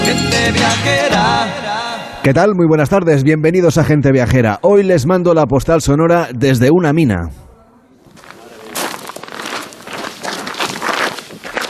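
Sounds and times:
speech: 0.4s - 7.4s
footsteps in an underground mine gallery in the Sierra del Aguilón: 8.0s - 11.6s.

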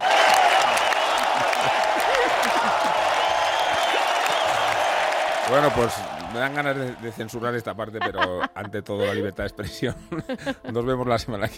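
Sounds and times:
stadium crowd ovation and applause: 0.0s - 8.0s
laughter: 0.7s - 4.8s, 5.6s - 11.0s
speech: 5.5s - 11.5s.

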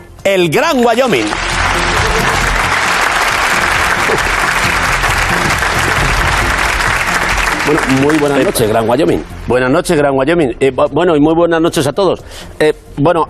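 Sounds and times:
speech: 0.2s - 1.4s, 7.7s - 13.2s
loud audience applause: 1.0s - 8.8s.

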